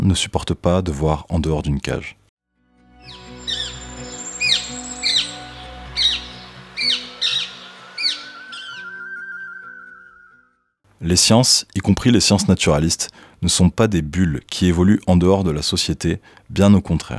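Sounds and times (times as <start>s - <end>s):
speech: 0.0s - 2.2s, 11.0s - 17.1s
sustained low music: 2.6s - 9.1s
Rose-ringed Parakeet squawks: 3.4s - 5.4s, 6.0s - 10.3s.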